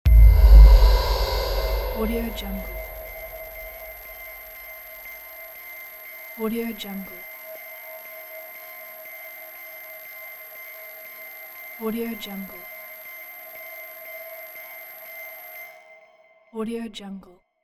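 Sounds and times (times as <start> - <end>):
tension suspense builder: 0.0 - 4.0.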